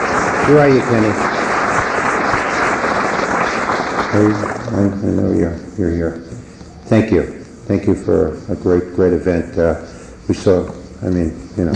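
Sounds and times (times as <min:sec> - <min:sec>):
crowd applause: 0:00.0 - 0:05.4
speech: 0:00.5 - 0:01.4, 0:04.1 - 0:11.7.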